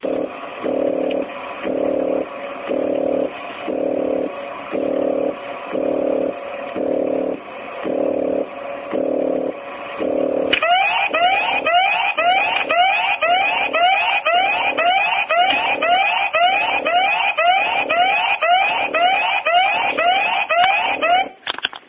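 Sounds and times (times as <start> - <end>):
alarm: 0.2 - 21.4.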